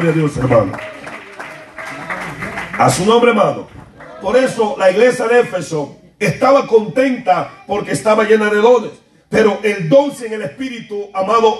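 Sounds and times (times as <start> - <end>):
speech: 0.0 - 0.9, 2.8 - 11.5
audience applauding: 0.0 - 4.6.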